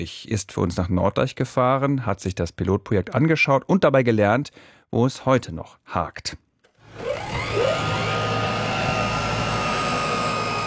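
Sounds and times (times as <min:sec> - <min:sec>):
speech: 0:00.0 - 0:06.4
cargo drone motors spinning up for takeoff: 0:06.8 - 0:10.6.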